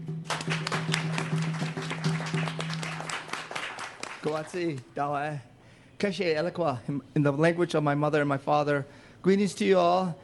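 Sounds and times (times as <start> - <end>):
audience applause: 0.2 - 4.8
speech: 4.2 - 10.2.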